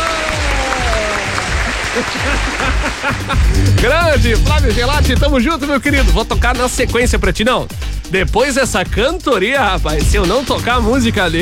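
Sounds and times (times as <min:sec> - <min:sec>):
applause for a singer on a radio show: 0:00.0 - 0:03.5
laughter: 0:00.0 - 0:05.2
speech: 0:02.0 - 0:11.3.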